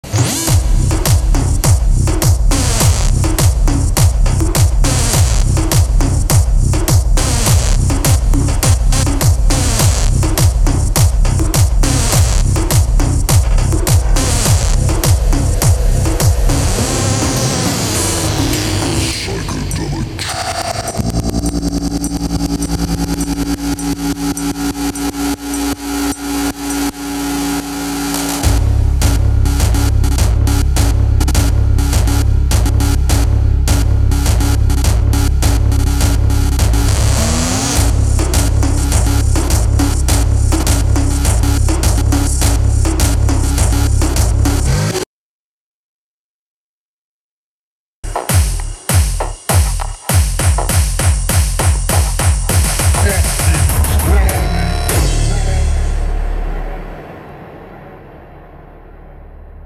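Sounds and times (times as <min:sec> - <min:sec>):
techno music: 0:00.0 - 0:45.0, 0:48.0 - 0:57.5.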